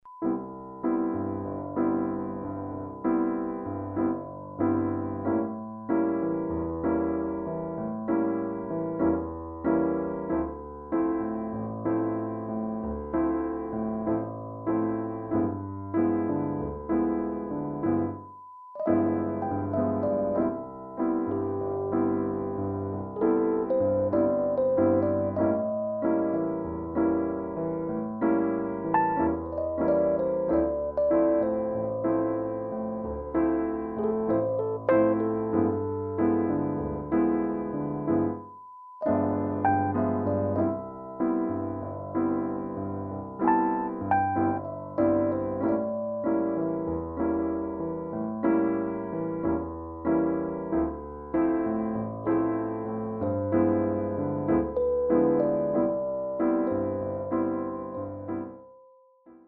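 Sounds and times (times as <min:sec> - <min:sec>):
artless piano: 0:00.0 - 0:59.4.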